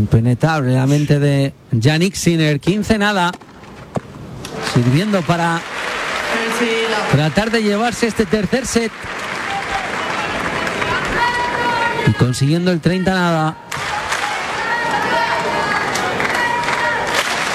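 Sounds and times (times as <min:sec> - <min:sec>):
speech: 0:00.0 - 0:04.0, 0:04.6 - 0:06.0, 0:06.6 - 0:09.4, 0:12.1 - 0:13.9
applause: 0:04.6 - 0:12.2, 0:13.7 - 0:17.5.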